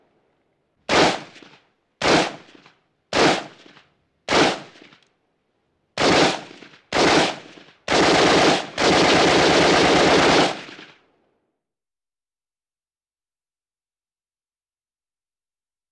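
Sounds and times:
burst gunfire: 0.9 - 2.5, 3.1 - 5.0, 6.0 - 11.0
semi-automatic gunshots: 0.9 - 2.5, 3.1 - 3.7, 4.3 - 5.0, 6.0 - 11.0.

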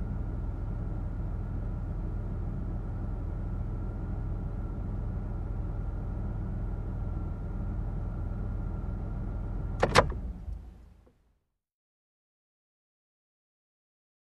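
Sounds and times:
car ride: 0.0 - 11.3.

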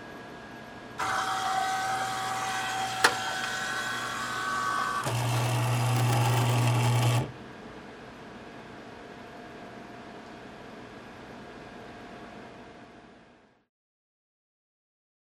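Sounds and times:
factory machine turning on: 1.0 - 7.4.

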